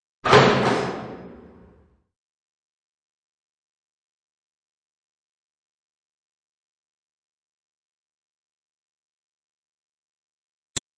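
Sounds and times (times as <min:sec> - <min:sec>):
doors: 0:00.2 - 0:02.0.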